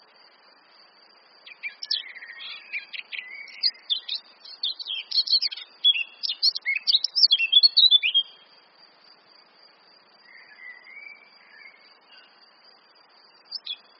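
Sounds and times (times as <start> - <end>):
Eurasian blackcap singing: 1.5 - 8.4, 13.5 - 13.9.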